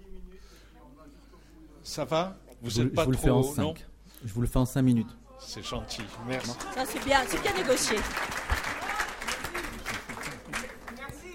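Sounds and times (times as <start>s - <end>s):
speech: 1.8s - 8.5s
audience applause: 5.9s - 11.1s.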